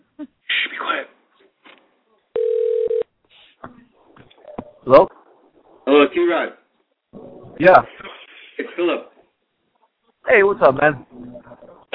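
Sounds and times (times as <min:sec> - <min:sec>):
electronic phone ringback tone: 0:02.4 - 0:03.1
speech: 0:04.9 - 0:05.2, 0:05.9 - 0:06.6, 0:07.6 - 0:08.0, 0:08.8 - 0:09.1, 0:10.3 - 0:11.3.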